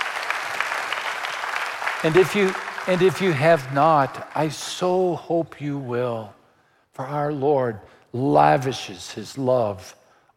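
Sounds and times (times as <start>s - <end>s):
church congregation applause during a sermon: 0.0s - 5.2s
speech: 2.0s - 6.4s, 7.0s - 10.3s.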